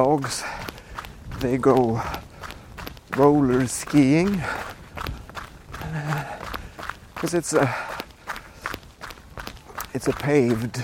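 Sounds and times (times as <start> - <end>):
speech: 0.0 - 0.6, 1.4 - 2.3, 3.2 - 4.8, 7.2 - 7.9, 10.0 - 10.8
running footsteps on gravel: 0.0 - 10.8
man breathing: 0.2 - 1.3, 1.9 - 2.9, 4.3 - 8.9.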